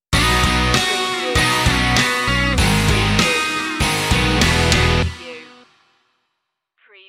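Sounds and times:
musical stinger: 0.2 - 5.6.

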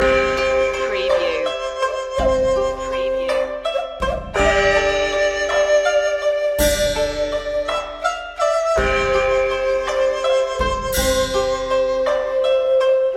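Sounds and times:
Chinese waltz music loop: 0.0 - 13.1.

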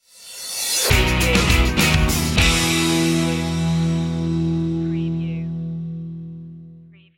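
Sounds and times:
free and easy music stinger: 0.1 - 7.0.

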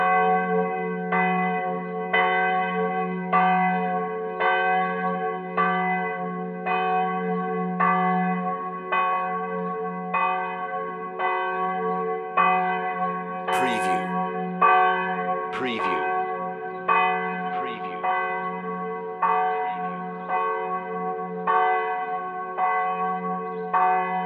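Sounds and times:
church bell ringing: 0.0 - 24.2.

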